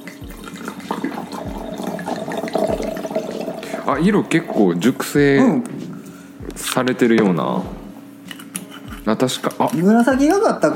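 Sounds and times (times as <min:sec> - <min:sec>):
Aglianico red wine poured into a glass from a dusty bottle: 0:00.3 - 0:05.4
speech: 0:03.9 - 0:05.8, 0:06.6 - 0:07.8, 0:09.1 - 0:10.7.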